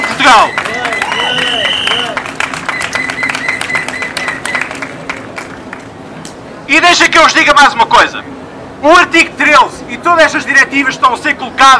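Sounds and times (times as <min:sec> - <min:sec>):
audience applause: 0:00.0 - 0:05.8
speech: 0:00.3 - 0:00.6, 0:06.7 - 0:11.7.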